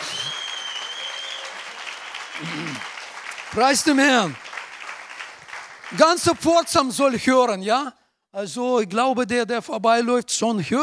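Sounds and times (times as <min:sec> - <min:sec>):
audience applauding: 0:00.0 - 0:07.1
speech: 0:02.4 - 0:02.9, 0:03.5 - 0:04.5, 0:05.9 - 0:10.8.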